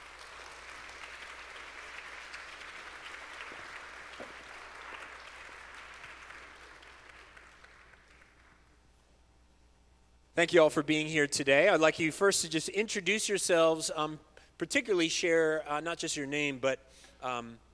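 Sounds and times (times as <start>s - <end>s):
audience applause at a Christian gathering: 0.0s - 8.7s
speech: 10.4s - 17.6s.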